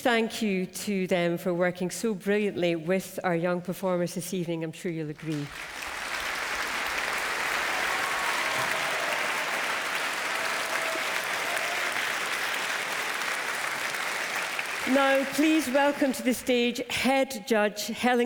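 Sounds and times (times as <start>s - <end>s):
speech: 0.0s - 5.8s, 15.0s - 18.2s
rousing applause for a symphony orchestra: 5.3s - 16.4s.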